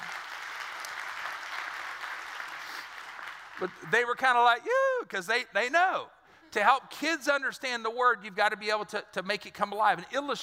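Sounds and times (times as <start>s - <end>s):
audience applause: 0.0s - 3.9s
speech: 3.6s - 10.4s.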